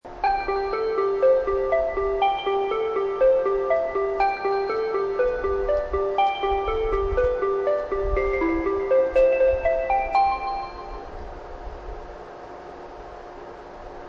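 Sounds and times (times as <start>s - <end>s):
melody: 0.1s - 11.2s.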